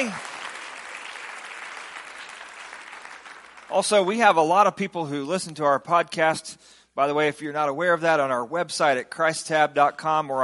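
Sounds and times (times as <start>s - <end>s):
speech: 0.0s - 0.3s, 3.7s - 10.4s
audience clapping hands in praise: 0.0s - 4.4s.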